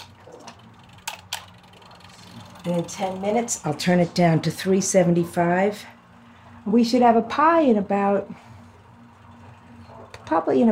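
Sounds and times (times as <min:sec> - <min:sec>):
kitchen timer being set: 0:00.0 - 0:04.0
low steady hum: 0:00.0 - 0:10.7
speech: 0:02.6 - 0:05.9, 0:06.6 - 0:08.4, 0:10.3 - 0:10.7.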